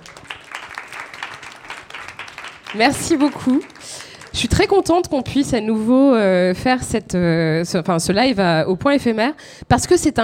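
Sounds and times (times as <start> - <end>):
audience applause: 0.0 - 4.8
speech: 2.7 - 10.2.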